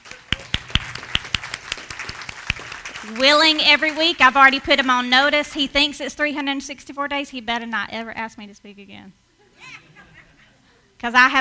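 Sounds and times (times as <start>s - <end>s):
round of applause: 0.0s - 4.6s
speech: 3.0s - 9.2s, 11.0s - 11.3s
laughter: 9.4s - 10.8s.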